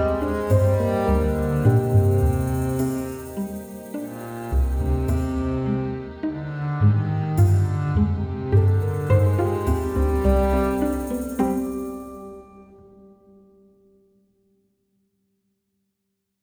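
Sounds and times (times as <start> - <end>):
orchestral music: 0.0 - 12.9.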